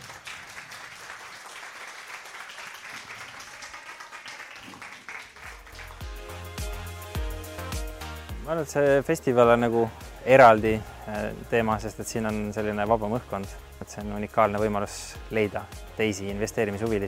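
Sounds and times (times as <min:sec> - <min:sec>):
audience applause: 0:00.0 - 0:06.1
speech: 0:08.5 - 0:17.0.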